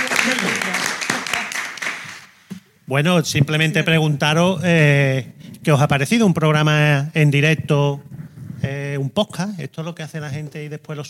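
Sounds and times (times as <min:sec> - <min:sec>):
audience applause at a live podcast recording: 0:00.0 - 0:02.4
speech: 0:02.9 - 0:08.1, 0:08.7 - 0:11.0.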